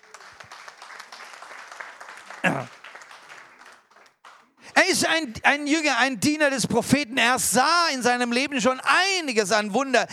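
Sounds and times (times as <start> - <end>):
audience applause: 0.0 - 5.2
speech: 4.9 - 10.1.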